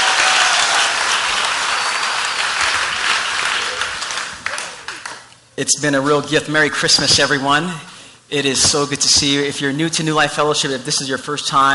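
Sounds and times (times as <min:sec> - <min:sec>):
church congregation applause at a Christmas service: 0:00.0 - 0:05.3
speech: 0:05.6 - 0:11.7.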